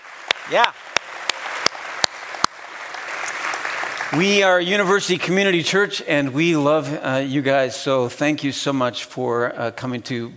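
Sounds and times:
audience applause for returning students: 0.0s - 5.1s
speech: 0.5s - 0.8s, 4.1s - 10.3s.

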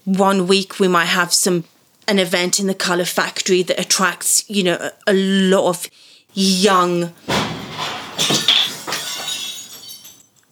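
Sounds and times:
speech: 0.1s - 7.6s
mirror glass breaking upstairs: 7.2s - 10.5s.

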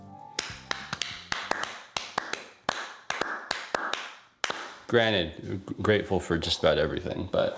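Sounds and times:
soft golf clap: 0.4s - 4.9s
speech: 4.9s - 7.5s.

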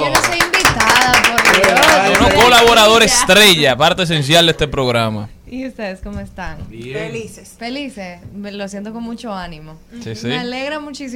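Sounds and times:
applause: 0.0s - 2.9s
speech: 2.6s - 11.1s.

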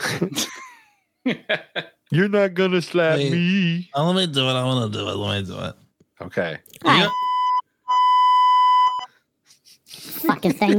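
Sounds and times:
speech: 0.1s - 0.5s, 1.2s - 7.3s, 10.2s - 10.7s
misfiring censor bleep tone: 6.9s - 9.1s.

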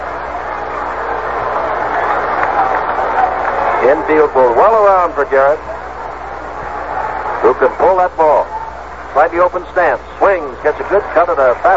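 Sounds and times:
restless baseball stadium crowd: 0.0s - 11.7s
speech: 3.9s - 5.7s, 7.6s - 8.5s, 9.2s - 11.7s.

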